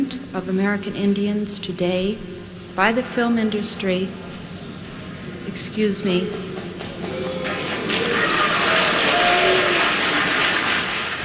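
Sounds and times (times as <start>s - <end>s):
speech: 0.4s - 4.4s, 5.6s - 6.7s
audience booing during a speech: 6.0s - 11.2s.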